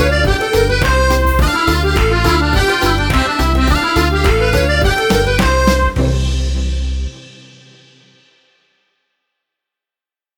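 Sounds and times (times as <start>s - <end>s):
karaoke singing: 0.0s - 6.5s.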